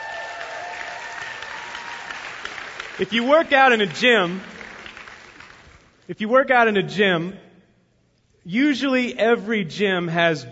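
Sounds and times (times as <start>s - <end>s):
crowd clapping: 0.0s - 6.1s
speech: 3.0s - 4.5s, 6.1s - 7.4s, 8.4s - 10.5s.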